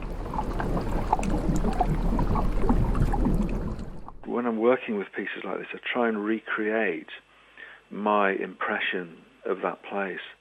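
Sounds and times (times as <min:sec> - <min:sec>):
seawater washing back and forth over hydrophones: 0:00.0 - 0:04.3
speech: 0:04.4 - 0:07.3, 0:07.9 - 0:10.3.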